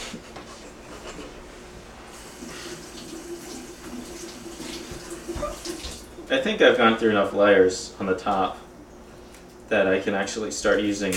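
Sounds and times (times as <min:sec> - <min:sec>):
tap water running over a vegetable being washed: 0:02.1 - 0:06.3
speech: 0:06.3 - 0:08.6, 0:09.7 - 0:11.1.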